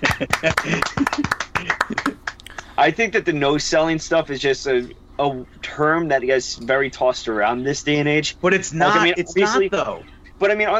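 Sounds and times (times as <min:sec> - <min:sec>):
speech: 0:00.0 - 0:02.0, 0:02.8 - 0:10.7
audience clapping: 0:00.0 - 0:02.7
laughter: 0:00.0 - 0:03.5, 0:08.6 - 0:09.9
voices chattering and cheering: 0:02.8 - 0:10.7.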